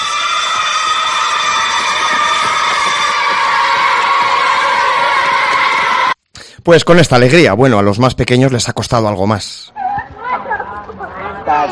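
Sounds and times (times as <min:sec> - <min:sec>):
children shouting in a school playground: 0:00.0 - 0:06.2
speech: 0:06.6 - 0:09.8.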